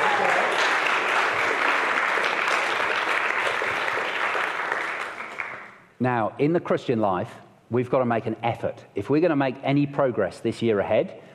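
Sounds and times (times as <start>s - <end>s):
audience clapping: 0.0s - 5.9s
speech: 6.0s - 11.3s.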